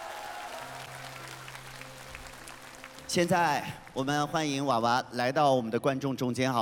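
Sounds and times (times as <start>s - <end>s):
audience applause: 0.0s - 4.0s
speech: 3.1s - 6.6s.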